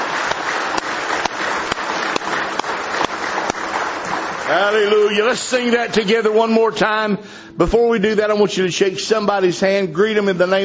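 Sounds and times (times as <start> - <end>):
audience clapping hands: 0.0 - 6.4
speech: 4.5 - 10.6.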